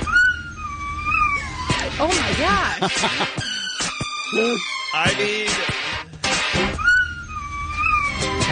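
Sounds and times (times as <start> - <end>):
dog howling along to a pop song: 0.1 - 1.8, 6.8 - 8.4
speech: 2.0 - 3.5, 4.3 - 5.8
laughter: 2.6 - 3.5.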